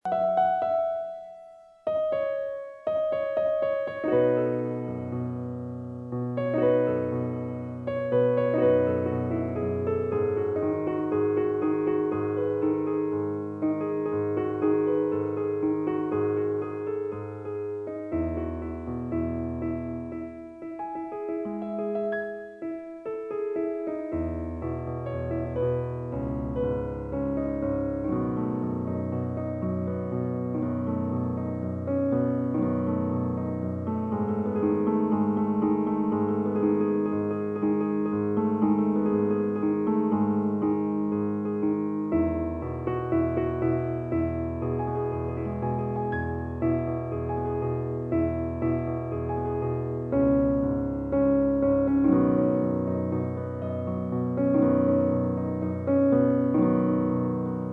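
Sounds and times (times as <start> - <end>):
piano: 0.0 - 57.7.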